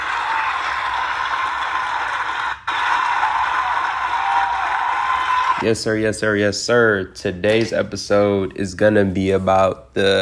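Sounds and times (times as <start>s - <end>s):
crowd applause sound effect: 0.0s - 5.6s
speech: 5.6s - 10.2s.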